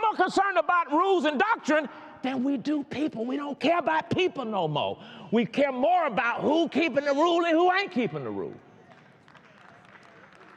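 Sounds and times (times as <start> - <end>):
speech: 0.2 - 8.6
audience clapping: 8.8 - 10.5.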